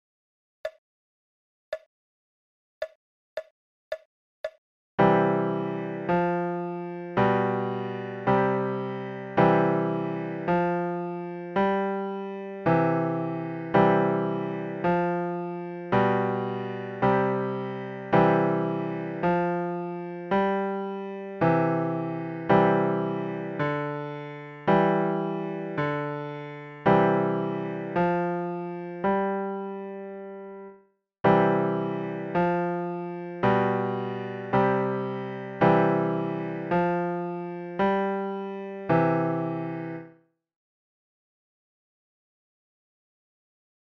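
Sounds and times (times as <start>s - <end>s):
folk tune melody in left channel: 5.0s - 30.7s, 31.3s - 40.1s.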